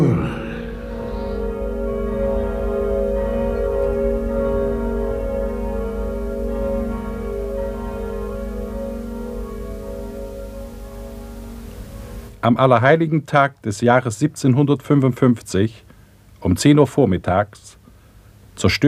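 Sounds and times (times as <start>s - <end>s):
church bells ringing: 0.0s - 12.4s
speech: 12.4s - 17.8s, 18.6s - 18.8s.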